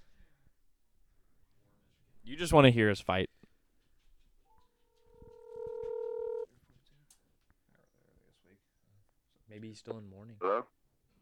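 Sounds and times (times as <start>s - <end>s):
faint noise: 0.0s - 11.2s
speech: 2.3s - 3.4s, 9.7s - 10.8s
touch-tone telephone dialing beeps: 5.2s - 6.4s.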